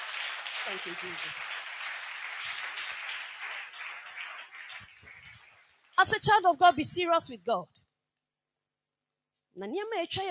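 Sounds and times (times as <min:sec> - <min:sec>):
audience clapping: 0:00.0 - 0:06.2
speech: 0:00.6 - 0:01.6, 0:06.0 - 0:07.8, 0:09.6 - 0:10.2.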